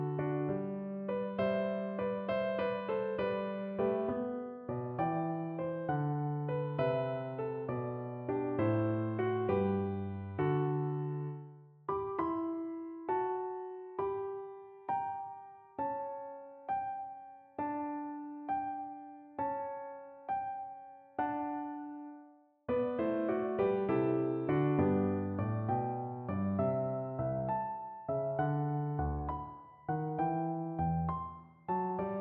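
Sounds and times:
pastorale piano piece: 0:00.0 - 0:32.1.

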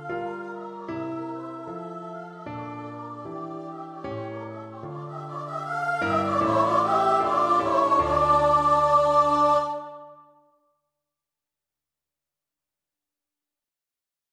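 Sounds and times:
two voices singing a duet: 0:00.0 - 0:10.2.

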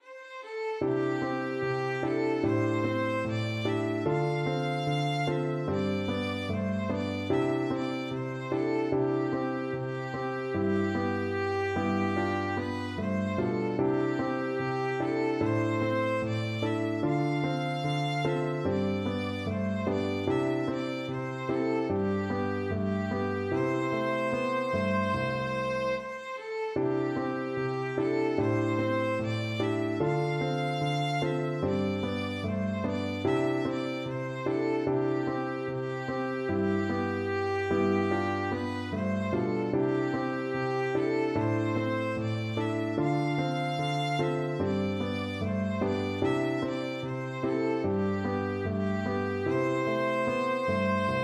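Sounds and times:
violin: 0:00.0 - 0:51.2.

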